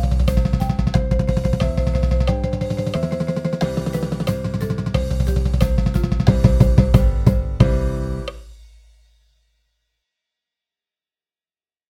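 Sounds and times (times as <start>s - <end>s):
cheesy marching percussion rolls with countoff: 0.0s - 8.5s.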